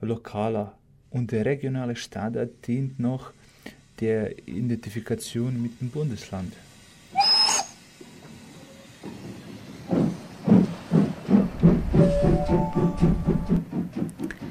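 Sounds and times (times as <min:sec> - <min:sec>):
speech: 0:00.0 - 0:06.7
sharp hiss at Linz main railway station: 0:02.2 - 0:14.4
train wheel clatter at platform 7 of Linz main railway station: 0:07.8 - 0:14.4
thin tonal squeals: 0:12.0 - 0:13.6.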